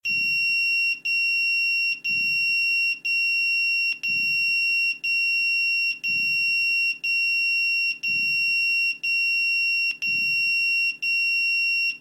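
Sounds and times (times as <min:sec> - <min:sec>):
Motorola pager tone: 0:00.0 - 0:12.0.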